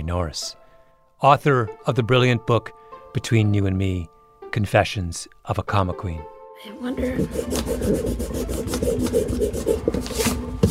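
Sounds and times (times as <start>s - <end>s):
speech: 0.0s - 0.6s, 1.2s - 10.6s
eraser scrubbing paper: 7.0s - 10.6s.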